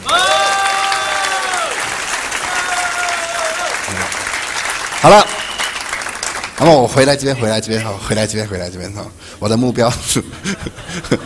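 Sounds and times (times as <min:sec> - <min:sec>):
audience applause: 0:00.0 - 0:07.5
speech: 0:05.0 - 0:05.4, 0:06.6 - 0:11.2.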